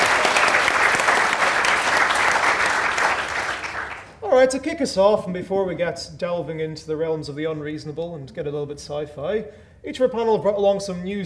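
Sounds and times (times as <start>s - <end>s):
audience applause: 0.0s - 4.2s
speech: 4.4s - 11.2s.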